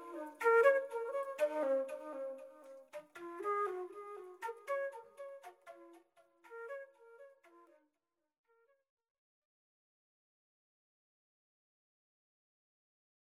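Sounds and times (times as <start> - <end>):
flute rondo with delay: 0.0 - 7.7.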